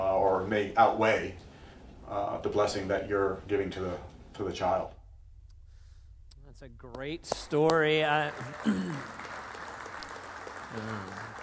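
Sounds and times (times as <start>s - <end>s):
speech: 0.5s - 1.5s, 2.1s - 5.0s, 6.6s - 9.3s, 10.7s - 11.3s
audience clapping: 6.9s - 11.4s.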